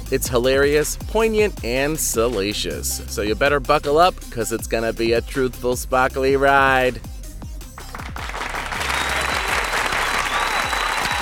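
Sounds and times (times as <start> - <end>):
speech: 0.1 - 7.1
canned studio-audience applause: 7.9 - 11.2.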